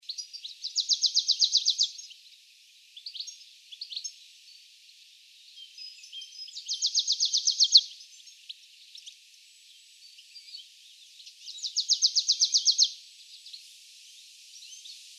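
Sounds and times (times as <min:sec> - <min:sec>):
marsh tit calling: 0:00.1 - 0:02.1, 0:06.2 - 0:07.8, 0:11.6 - 0:12.9.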